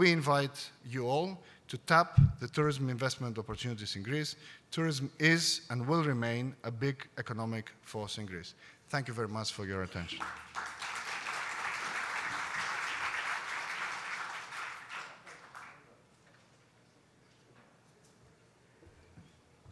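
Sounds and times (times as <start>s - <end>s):
speech: 0.0s - 10.7s
audience applause: 10.2s - 15.8s.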